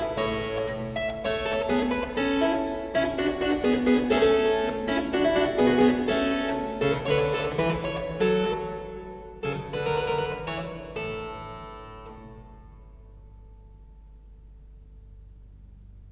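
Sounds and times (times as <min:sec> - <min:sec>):
keyboard allegro in B flat major: 0:00.0 - 0:11.0.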